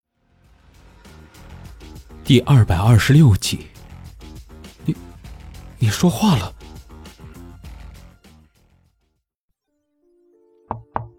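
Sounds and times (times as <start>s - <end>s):
music: 0.1s - 11.1s
speech: 2.3s - 3.7s, 4.8s - 5.0s, 5.8s - 6.6s
knocking on a hospital room door: 10.7s - 11.1s.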